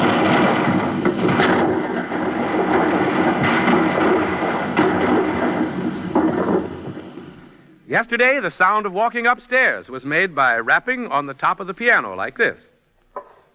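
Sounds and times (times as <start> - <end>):
recording of cannon fire played on a turntable: 0.0 - 7.6
speech: 8.0 - 12.7.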